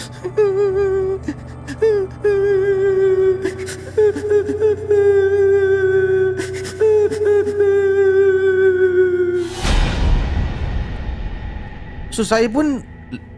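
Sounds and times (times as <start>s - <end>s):
person crying: 0.0s - 9.5s
speech: 0.2s - 0.5s, 12.2s - 13.3s
rushing whoosh: 9.4s - 12.6s.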